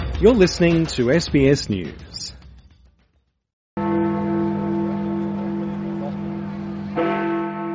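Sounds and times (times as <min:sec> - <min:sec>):
speech: 0:00.2 - 0:02.4
Big Ben clock tower chimes in London: 0:03.8 - 0:07.7.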